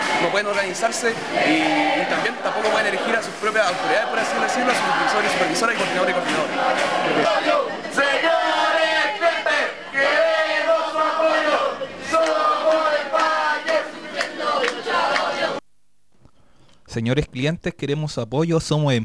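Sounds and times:
crowd of protesters chanting a slogan in unison: 0:00.0 - 0:15.6
speech: 0:00.3 - 0:08.3, 0:17.0 - 0:19.0.

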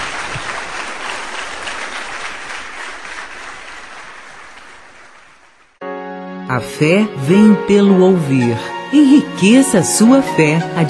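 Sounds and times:
church congregation applauding their God: 0:00.0 - 0:05.8
speech: 0:06.5 - 0:10.8.

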